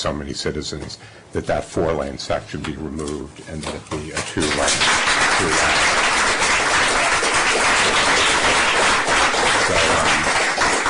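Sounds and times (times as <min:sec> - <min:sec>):
speech: 0:00.0 - 0:06.1
meeting audience applauding: 0:04.4 - 0:10.8.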